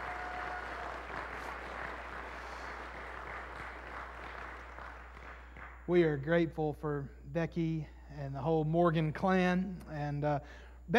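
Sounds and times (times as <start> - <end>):
audience applause: 0.0 - 5.8
speech: 5.9 - 10.9.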